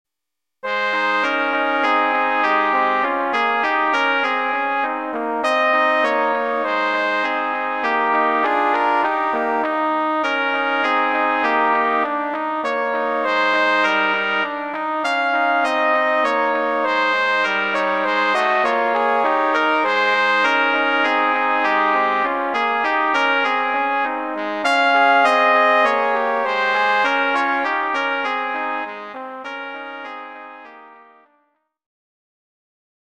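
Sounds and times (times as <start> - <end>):
trumpet melody: 0.6 - 31.4.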